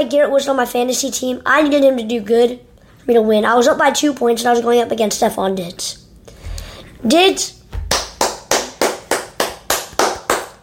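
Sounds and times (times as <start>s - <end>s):
speech: 0.0s - 6.0s, 7.0s - 7.6s
hand clapping: 7.7s - 10.6s.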